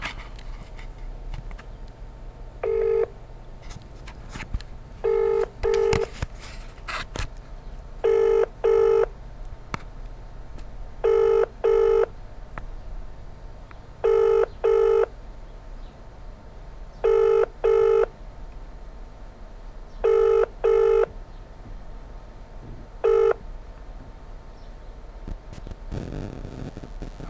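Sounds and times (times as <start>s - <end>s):
telephone ringing: 2.6s - 3.1s, 5.0s - 6.1s, 8.0s - 9.1s, 11.0s - 12.1s, 14.0s - 15.1s, 17.0s - 18.1s, 20.0s - 21.1s, 23.0s - 23.4s
telephone number dialed: 5.0s - 6.1s, 8.1s - 9.0s, 11.0s - 12.0s, 14.0s - 15.0s, 17.1s - 18.0s, 20.1s - 21.1s, 23.0s - 23.4s.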